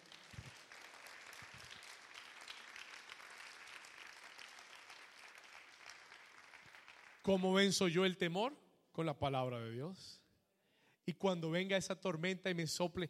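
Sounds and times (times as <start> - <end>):
audience applause: 0.0 - 7.3
speech: 7.3 - 10.2, 11.1 - 13.0.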